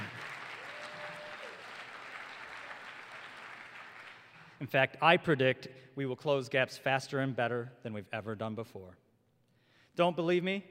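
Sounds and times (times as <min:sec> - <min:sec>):
audience applause: 0:00.0 - 0:04.6
speech: 0:04.6 - 0:09.0, 0:10.0 - 0:10.6.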